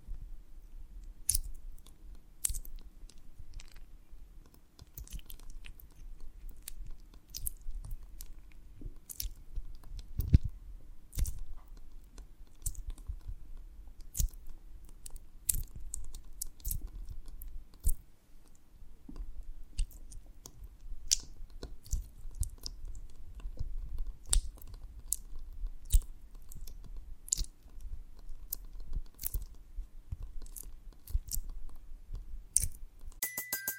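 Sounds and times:
honeycomb on a branch being chewed and bitten: 1.0 - 10.5, 11.1 - 18.6, 19.2 - 33.2
bright tone: 33.2 - 33.7.

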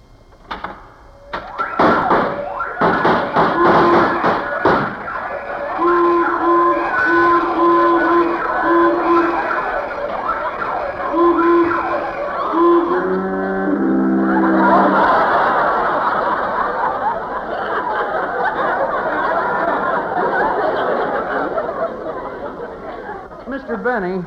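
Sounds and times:
sharp clicks and thumps: 0.3 - 5.1
vault burglar alarm wailing with pulsing beeps: 1.1 - 23.4
laughter: 3.5 - 24.2.

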